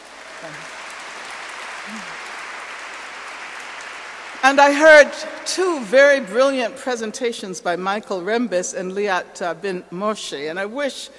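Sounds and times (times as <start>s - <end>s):
audience applauding: 0.0s - 6.3s
speech: 0.4s - 0.8s, 1.9s - 2.3s, 4.4s - 11.1s.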